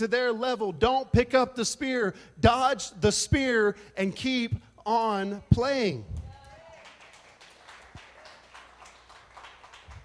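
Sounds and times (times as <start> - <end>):
speech: 0.0 - 6.2
audience clapping: 6.3 - 10.0.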